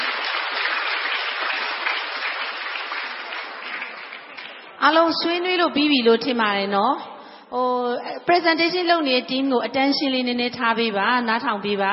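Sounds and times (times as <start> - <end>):
audience applause at the close of a talk: 0.0 - 4.8
speech: 4.8 - 11.9.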